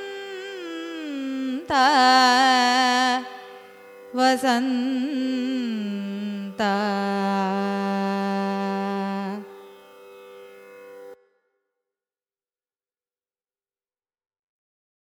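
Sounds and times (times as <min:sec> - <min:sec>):
Carnatic music in raga vasantha: 0:00.0 - 0:11.3.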